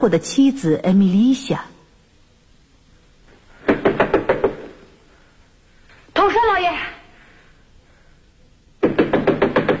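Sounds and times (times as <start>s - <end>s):
speech: 0.0s - 1.7s
knocking on a door: 3.6s - 4.8s, 8.8s - 9.7s.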